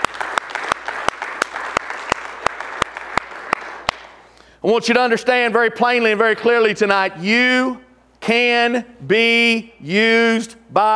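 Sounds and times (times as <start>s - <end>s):
scattered audience applause: 0.0s - 4.2s
audience clapping in rhythm: 0.0s - 4.3s
speech: 4.6s - 10.9s.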